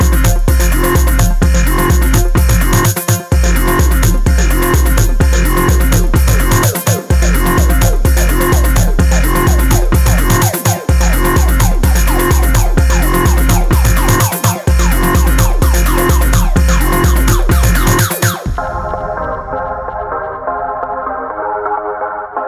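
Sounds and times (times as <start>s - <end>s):
electronic noise: 0.0s - 22.3s.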